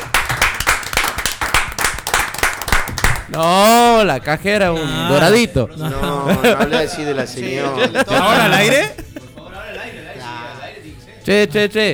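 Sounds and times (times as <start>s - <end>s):
applause, people clapping: 0.0s - 11.6s
laughter: 0.0s - 11.7s
speech: 3.3s - 9.1s, 11.2s - 11.9s.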